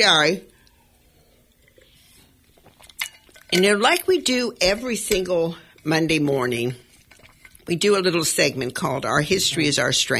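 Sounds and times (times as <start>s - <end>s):
speech: 0.0s - 0.5s, 3.5s - 6.8s, 7.7s - 10.1s
radio host sipping water: 0.5s - 3.5s, 6.8s - 7.7s.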